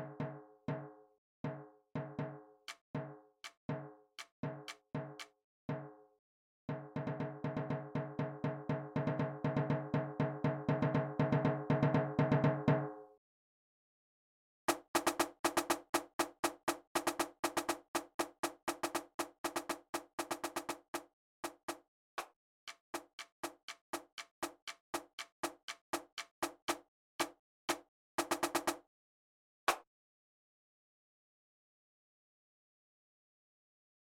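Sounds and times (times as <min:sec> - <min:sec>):
snare drum: 0:01.5 - 0:05.9, 0:06.7 - 0:12.8, 0:14.7 - 0:28.8.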